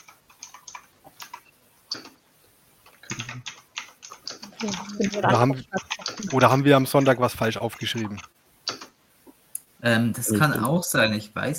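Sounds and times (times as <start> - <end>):
typing on a computer keyboard: 0.0 - 2.2, 2.9 - 8.9
speech: 4.6 - 8.3, 9.8 - 11.5.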